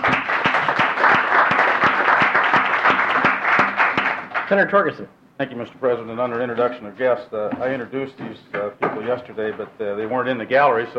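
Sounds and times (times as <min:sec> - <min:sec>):
applause from a group welcoming guests in the Senate: 0:00.0 - 0:04.7
speech: 0:04.5 - 0:10.9.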